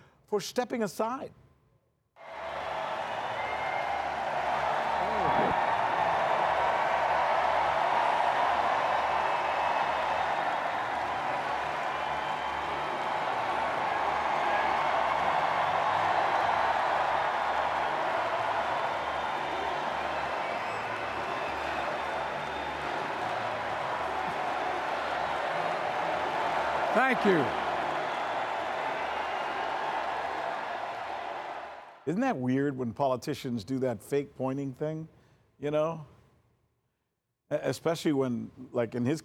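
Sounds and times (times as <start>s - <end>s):
speech: 0.3s - 1.4s, 27.2s - 27.6s, 32.1s - 36.1s, 37.5s - 39.2s
audience applauding: 2.2s - 32.0s.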